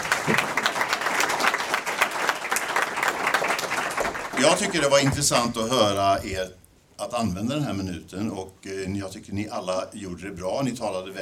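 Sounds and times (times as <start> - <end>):
audience applause: 0.0 - 5.6
speech: 4.5 - 11.2.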